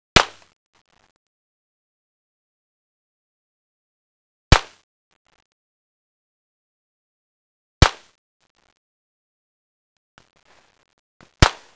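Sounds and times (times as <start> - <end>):
gunfire: 4.5 - 4.8, 7.8 - 8.2, 11.4 - 11.7.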